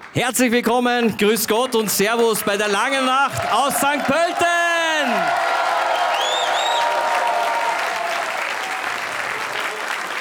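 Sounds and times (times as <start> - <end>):
crowd applauding in a festival tent: 0.0 - 10.1
speech: 0.1 - 5.5
whistles: 5.8 - 8.2.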